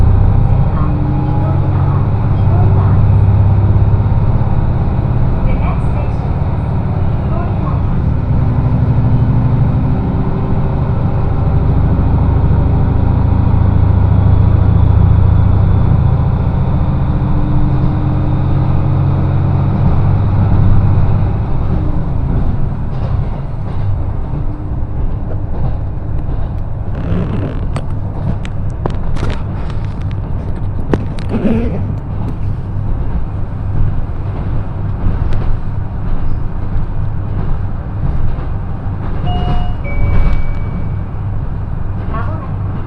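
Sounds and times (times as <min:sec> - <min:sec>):
train rumbling on the Echigo Tokimeki Railway: 0:00.0 - 0:42.8
clattering knocks and clicks of the train: 0:19.7 - 0:40.8
train motor tones on the Echigo Tokimeki Railway: 0:26.9 - 0:27.9.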